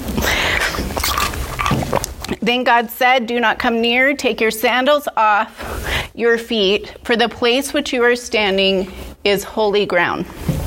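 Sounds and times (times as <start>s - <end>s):
preacher drinking water: 0.0s - 2.4s
speech: 2.4s - 10.5s.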